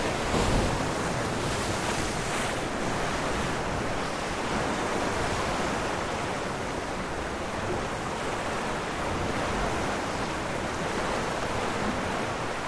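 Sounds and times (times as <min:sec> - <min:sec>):
sea waves crashing on rocks: 0:00.0 - 0:12.6.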